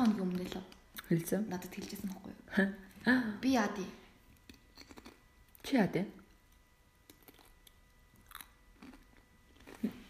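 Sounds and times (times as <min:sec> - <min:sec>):
speech: 0:00.6 - 0:04.0, 0:05.7 - 0:06.2
person eating crunchy chips: 0:04.4 - 0:05.3, 0:07.0 - 0:10.0.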